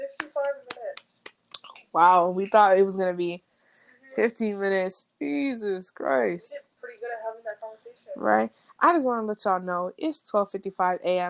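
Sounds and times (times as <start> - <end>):
scattered hand claps: 0.2 - 1.6
speech: 2.0 - 3.5, 4.2 - 6.7, 7.8 - 11.2.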